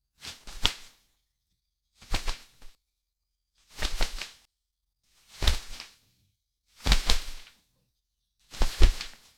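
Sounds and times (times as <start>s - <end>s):
velvet curtain rushing and folding: 0.2s - 1.1s, 2.0s - 2.8s, 3.6s - 4.5s, 5.2s - 6.1s, 6.8s - 7.6s, 8.5s - 9.3s.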